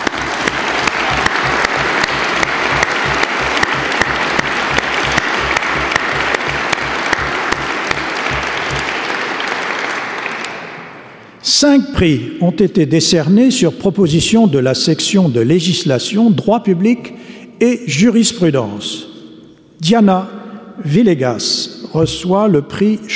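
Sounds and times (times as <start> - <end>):
audience applause: 0.0 - 10.7
speech: 11.6 - 19.1, 19.8 - 23.1.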